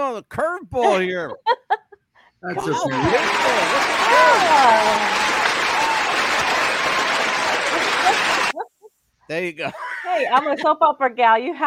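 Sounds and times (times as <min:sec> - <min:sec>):
speech: 0:00.0 - 0:01.6, 0:02.4 - 0:05.3, 0:09.3 - 0:11.6
laughter: 0:00.8 - 0:02.0, 0:02.6 - 0:10.8
crowd applause sound effect: 0:02.6 - 0:08.6.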